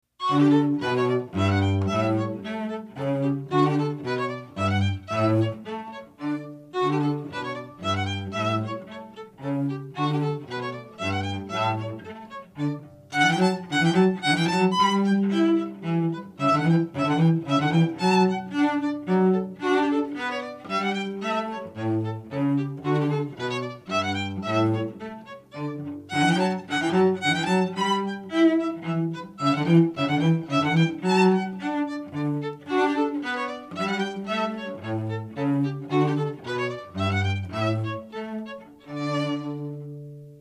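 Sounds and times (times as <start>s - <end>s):
instrumental duet: 0.0s - 40.3s.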